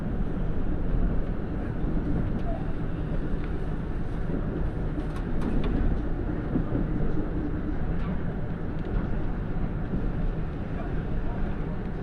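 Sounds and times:
KiHa 85 Nanki limited express diesel railcar rumbling toward Nagoya: 0.0 - 12.0.

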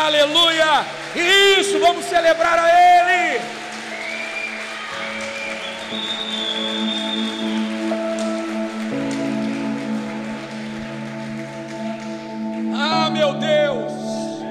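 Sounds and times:
audience applauding: 0.0 - 14.4
speech: 0.1 - 3.6.

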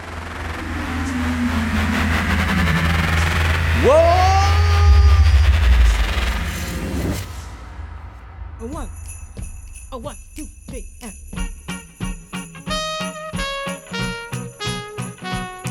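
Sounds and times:
harmonic whine: 0.0 - 8.7
train pulling away: 0.0 - 10.1.

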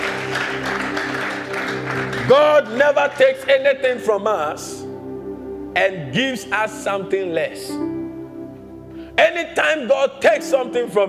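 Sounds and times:
audience clapping: 0.0 - 3.7
sustained low musical tones: 0.0 - 11.0
speech: 2.3 - 4.8, 5.8 - 7.9, 9.2 - 11.0.

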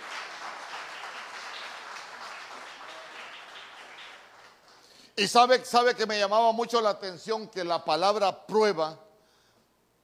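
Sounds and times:
audience applause: 0.0 - 4.9
speech: 5.2 - 9.0.

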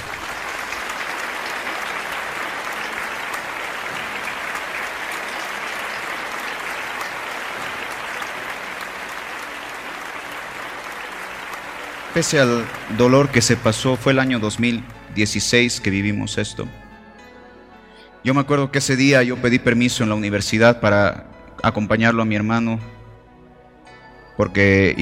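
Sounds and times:
audience applause: 0.0 - 15.0
speech: 12.2 - 16.8, 18.2 - 23.0, 24.4 - 25.0.

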